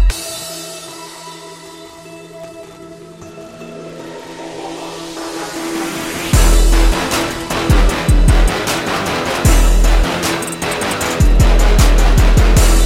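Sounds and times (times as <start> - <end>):
trap beat: 3.3 - 12.8.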